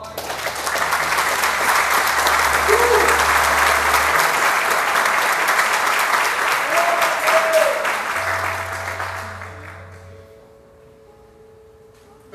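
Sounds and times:
audience applauding: 0.0 - 10.0.

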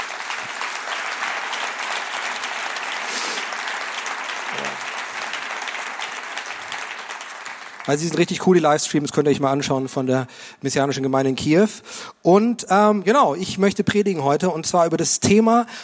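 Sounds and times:
applause: 0.0 - 9.0
speech: 7.9 - 15.8.

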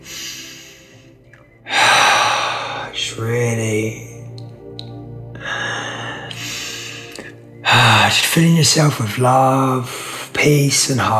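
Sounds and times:
deep breath in during a guided meditation: 0.0 - 3.0, 5.4 - 7.4
speech: 3.1 - 4.1, 7.7 - 11.1.

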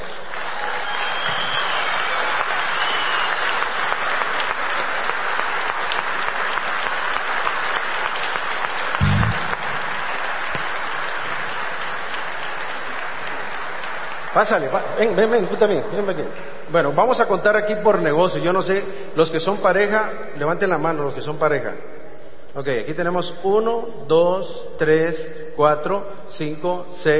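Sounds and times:
audience applause: 0.0 - 15.1
speech: 14.4 - 22.0, 22.6 - 27.1.

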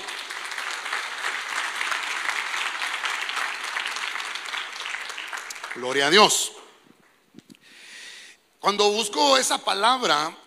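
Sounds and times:
church congregation clapping: 0.0 - 7.2
speech: 5.8 - 6.6, 8.6 - 10.4.

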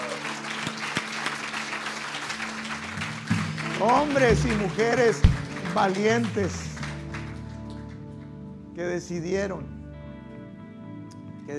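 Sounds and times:
audience applauding: 0.0 - 8.4
speech: 3.8 - 6.7, 8.8 - 9.8.

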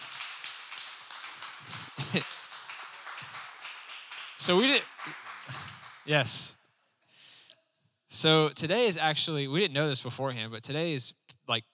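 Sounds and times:
audience applause: 0.0 - 6.2
speech: 2.1 - 2.4, 4.5 - 5.2, 6.1 - 6.6, 8.2 - 11.7.

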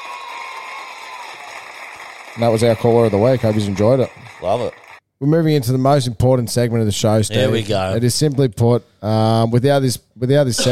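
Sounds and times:
applause: 0.0 - 5.0
speech: 2.4 - 10.7.

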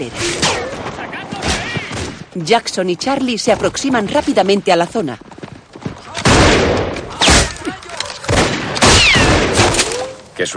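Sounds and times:
speech: 0.0 - 0.6, 2.4 - 5.3
gunfire in a western film shootout: 0.0 - 2.3, 6.1 - 10.0.

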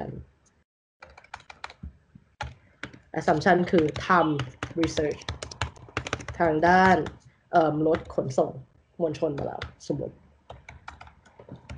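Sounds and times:
typing on a computer keyboard writing notes: 1.0 - 1.8, 2.4 - 7.2, 7.9 - 8.3, 10.5 - 11.7
speech: 3.2 - 5.4, 6.4 - 10.2.

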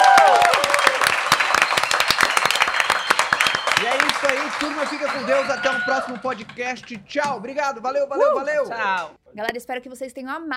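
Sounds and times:
round of applause from a small group: 0.0 - 7.0
people cheering: 0.0 - 7.3, 7.9 - 9.1
speech: 4.2 - 10.5.

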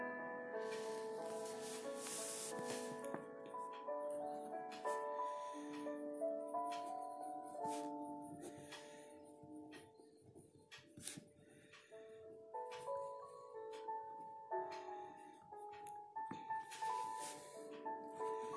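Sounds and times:
soft piano melody: 0.0 - 18.5
pencil scratching on paper: 0.8 - 2.9.

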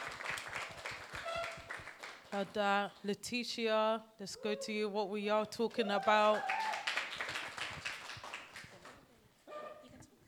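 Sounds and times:
audience clapping: 0.0 - 2.5, 6.0 - 9.0
speech: 2.3 - 6.7.

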